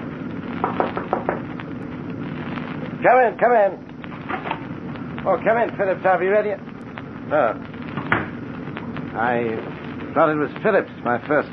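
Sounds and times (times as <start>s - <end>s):
knocking on the captain's door: 0.6s - 1.4s
speech: 3.0s - 4.5s, 5.2s - 6.7s, 7.3s - 7.7s, 9.2s - 11.5s.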